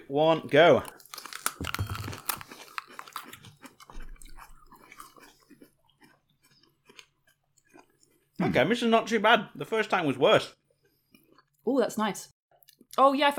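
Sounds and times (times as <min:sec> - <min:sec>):
speech: 0:00.1 - 0:01.0, 0:01.6 - 0:01.8, 0:08.4 - 0:10.6, 0:11.6 - 0:13.3
wet rhythmic chewing of a chili pepper: 0:00.5 - 0:08.4, 0:10.4 - 0:11.6
crunchy bite into a chili pepper: 0:00.8 - 0:08.2.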